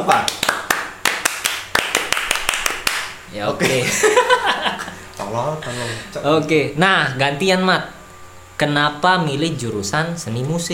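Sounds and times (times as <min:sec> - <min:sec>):
hand clapping: 0:00.0 - 0:03.2
speech: 0:03.4 - 0:08.0, 0:08.6 - 0:10.7
laughter: 0:03.6 - 0:05.2.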